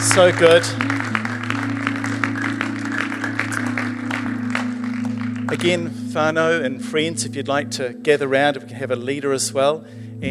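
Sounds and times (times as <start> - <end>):
audience clapping: 0.0 - 6.5
speech: 0.2 - 1.1, 5.5 - 10.3.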